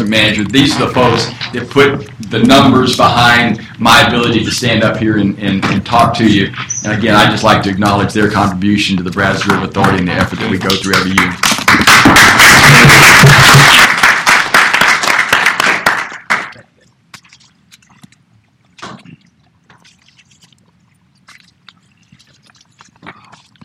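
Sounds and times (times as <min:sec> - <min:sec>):
speech: 0:00.0 - 0:13.8
crowd applause: 0:10.7 - 0:16.6.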